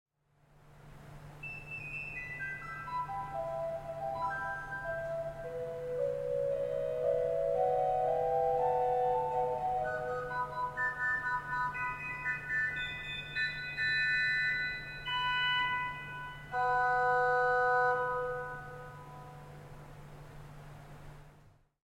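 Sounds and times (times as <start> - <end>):
pipe organ: 1.4 - 18.9.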